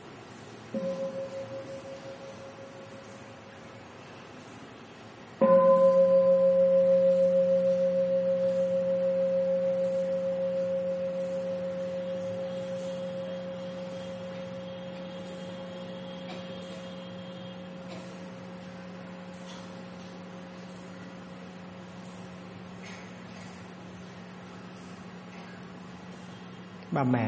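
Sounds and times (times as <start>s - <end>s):
meditation bell ringing: 0.7s - 3.5s, 5.4s - 22.3s.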